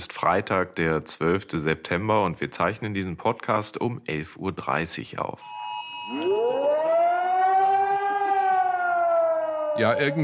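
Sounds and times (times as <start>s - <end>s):
speech: 0.0s - 6.4s, 9.8s - 10.2s
civil defense warning siren wailing: 5.4s - 10.2s.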